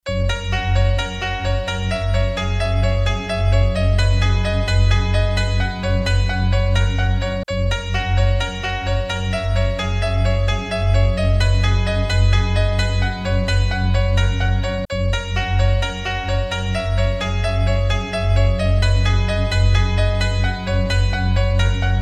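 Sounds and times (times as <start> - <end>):
piano: 0.0 - 22.0.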